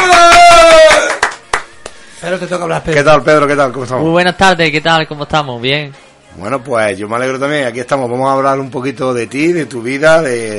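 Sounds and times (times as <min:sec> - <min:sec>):
audience applause: 0:00.0 - 0:02.1
speech: 0:02.4 - 0:10.5.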